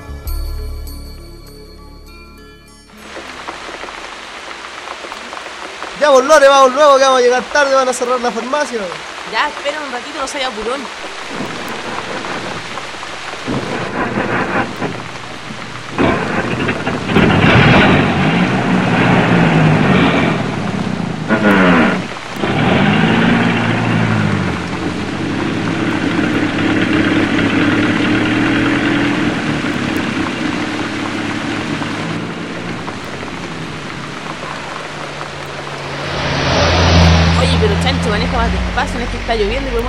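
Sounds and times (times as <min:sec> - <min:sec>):
heavy rain: 0:02.9 - 0:39.8
low thunder rumbles: 0:03.0 - 0:39.8
speech: 0:06.0 - 0:11.2, 0:39.3 - 0:39.8.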